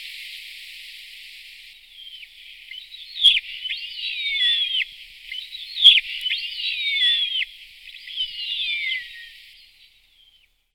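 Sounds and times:
bearded vulture shrill whistled twittering calls: 1.9s - 10.5s.

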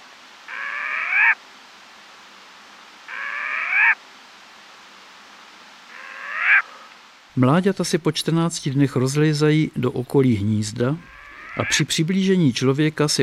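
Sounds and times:
short-eared owl hoarse squealing calls: 0.5s - 1.4s, 3.1s - 4.0s, 5.9s - 7.0s, 10.8s - 11.9s
speech: 7.4s - 13.2s.

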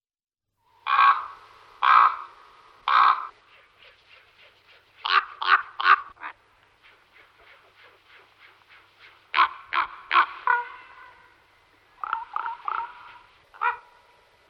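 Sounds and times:
common raven croaking: 0.8s - 3.4s, 5.0s - 6.4s, 9.3s - 14.4s.

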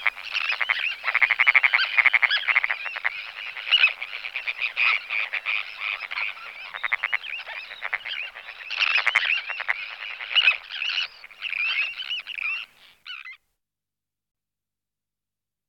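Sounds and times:
Sandwich tern Sterna sandvicensis calling: 0.0s - 13.3s.

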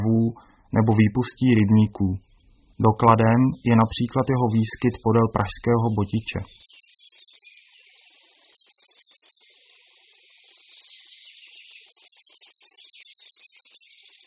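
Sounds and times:
grey wagtail ticking calls: 0.0s - 14.2s
speech: 0.1s - 6.7s.

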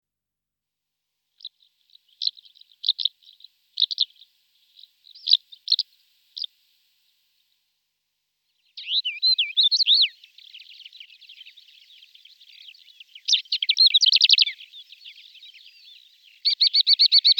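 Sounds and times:
greater short-toed lark Calandrella brachydactyla twittering: 1.4s - 4.2s, 5.1s - 5.8s, 8.8s - 17.3s.

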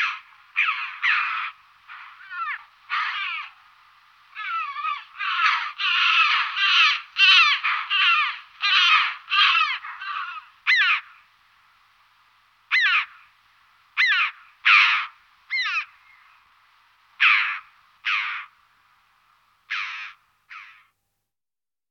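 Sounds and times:
Red-billed chough harsh ringing calls: 0.0s - 3.7s, 4.3s - 11.3s, 12.7s - 13.4s, 14.0s - 16.5s, 17.2s - 18.6s.

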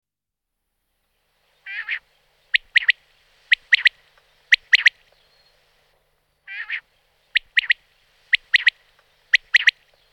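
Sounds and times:
Common quail Coturnix coturnix calling: 1.7s - 2.0s, 2.6s - 3.9s, 4.5s - 5.0s, 6.5s - 6.8s, 7.4s - 9.8s.

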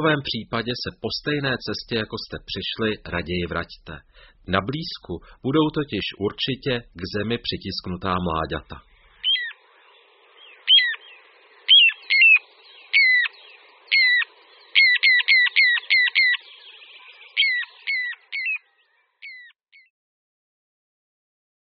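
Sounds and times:
speech: 0.0s - 8.9s
little ringed plover whistling calls: 9.0s - 19.9s.

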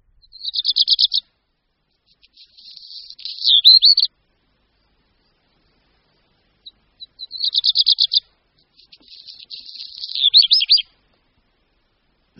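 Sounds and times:
Black redstart song with stuttering rattle and dry crackling: 0.0s - 1.2s, 1.9s - 4.1s, 6.6s - 10.9s.

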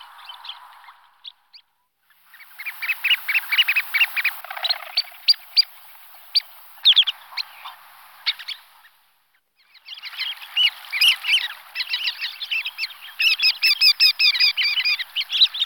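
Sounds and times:
Sanderling Calidris alba chattering and twittering calls: 2.3s - 8.6s, 10.1s - 15.6s.

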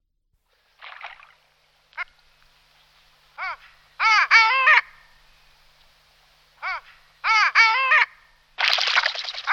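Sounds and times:
long-tailed duck calling: 3.4s - 5.2s, 6.6s - 9.5s.

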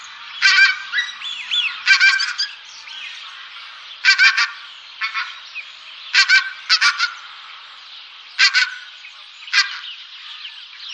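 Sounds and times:
pink-footed goose calls, double and triple honks: 0.4s - 1.1s, 1.7s - 2.5s, 3.5s - 5.4s, 6.1s - 7.3s, 8.4s - 8.9s.

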